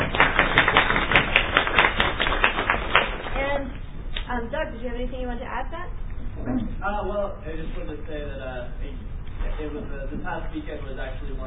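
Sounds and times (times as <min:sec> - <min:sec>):
audience applause: 0:00.0 - 0:03.4
speech: 0:04.6 - 0:11.4.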